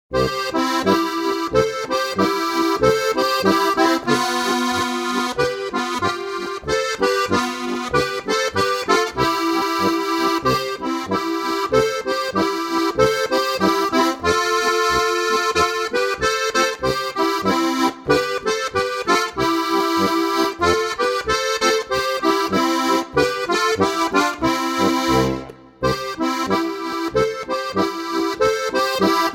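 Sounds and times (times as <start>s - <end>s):
polka music: 0.1s - 29.3s.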